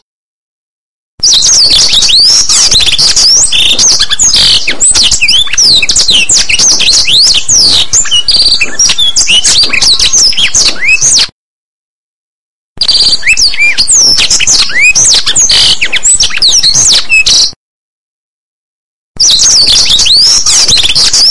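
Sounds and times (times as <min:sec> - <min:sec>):
blackthroat song: 0:01.2 - 0:11.3, 0:12.8 - 0:17.6, 0:19.2 - 0:21.2.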